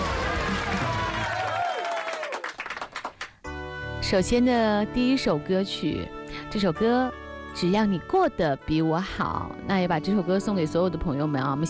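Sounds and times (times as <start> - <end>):
audience applause welcoming performers: 0.0 - 3.4
speech: 4.1 - 11.6.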